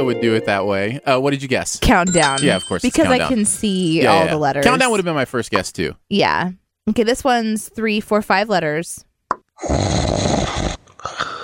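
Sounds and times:
speech: 0.0 - 10.1
snoring: 9.6 - 11.4.

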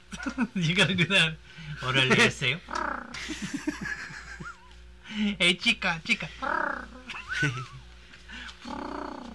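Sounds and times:
speech: 0.2 - 4.0, 5.2 - 7.8
person imitating pigeon or dove cooing: 2.7 - 3.2, 6.4 - 7.4, 8.6 - 9.3
laughter: 3.2 - 4.7, 7.1 - 7.8.

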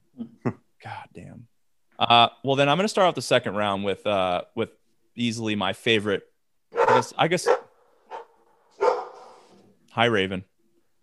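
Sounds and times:
speech: 0.8 - 6.3, 6.9 - 7.6, 10.0 - 10.5
dog barking: 6.7 - 9.6.

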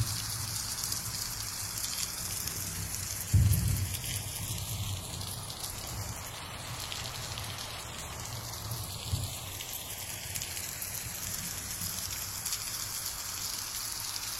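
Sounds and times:
subtle rain: 0.0 - 14.3
thunder: 3.2 - 5.3.

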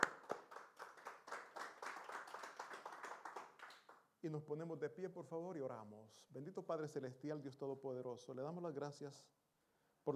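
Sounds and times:
audience applause: 0.0 - 3.8
speech: 4.2 - 9.4.

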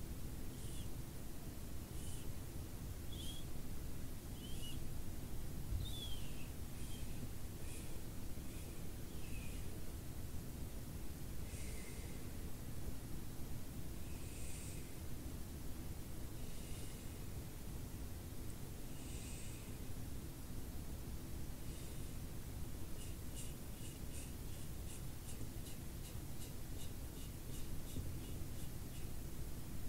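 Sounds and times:
low rushing hiss: 0.0 - 29.8
soft brush strokes: 23.0 - 29.2.

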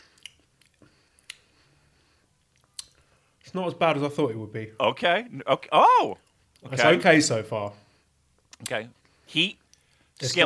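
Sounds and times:
chewing: 0.0 - 1.6, 2.4 - 3.1
speech: 3.5 - 7.8, 8.6 - 9.6, 10.2 - 10.4.

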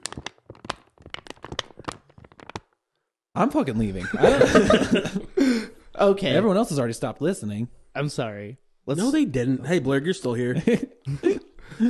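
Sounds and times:
half full plastic water bottle crinkling: 0.0 - 2.8
speech: 3.4 - 11.8
laughter: 4.0 - 5.7, 10.5 - 11.8.

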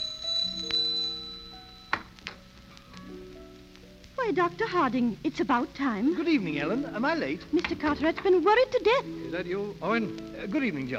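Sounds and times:
gate bell ringing: 0.0 - 2.2
speech: 4.3 - 10.9.

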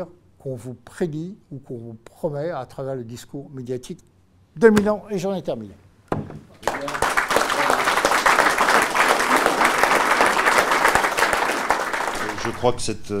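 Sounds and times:
speech: 0.0 - 5.8, 12.4 - 13.1
audience applause: 6.6 - 12.9.

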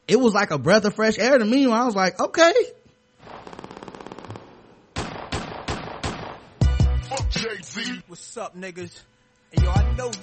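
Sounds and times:
speech: 0.1 - 2.8, 7.1 - 10.2
gunshots at the start of a song: 3.2 - 6.6.

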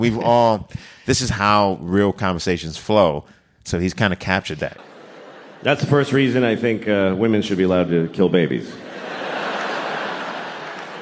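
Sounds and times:
speech: 0.0 - 4.9, 5.6 - 8.9
laughter: 4.7 - 6.9, 8.6 - 10.9
audience clapping: 9.2 - 10.9.

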